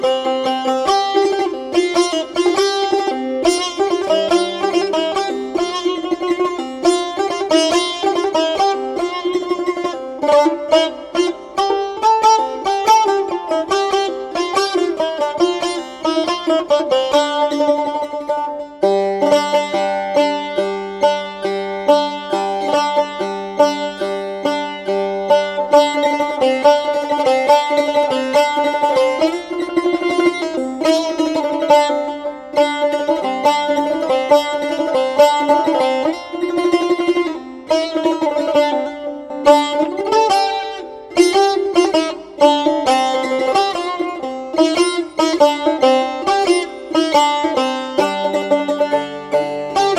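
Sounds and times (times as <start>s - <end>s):
setar: 0.0s - 49.9s.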